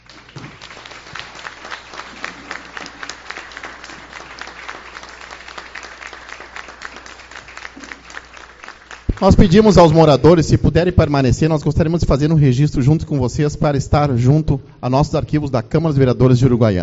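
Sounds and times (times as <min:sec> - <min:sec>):
applause for the community: 0:00.0 - 0:10.1
speech: 0:09.2 - 0:16.8.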